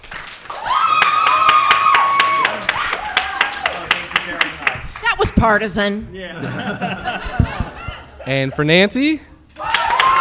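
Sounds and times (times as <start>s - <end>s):
audience clapping: 0.0s - 5.4s, 9.6s - 10.1s
loud whoops and cheering voices: 0.5s - 3.8s, 9.6s - 10.1s
speech: 5.4s - 7.5s, 8.2s - 9.3s
laughter: 6.3s - 8.7s.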